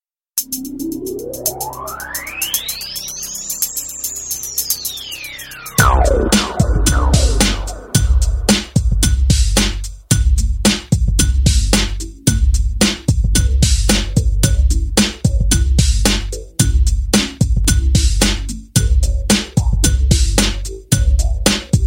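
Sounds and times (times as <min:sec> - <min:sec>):
bass: 0:02.5 - 0:21.8.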